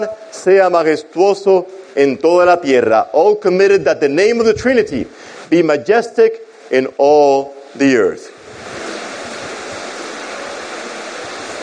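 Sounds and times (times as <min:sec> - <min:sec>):
speech: 0:00.0 - 0:08.4
rain: 0:08.3 - 0:11.6.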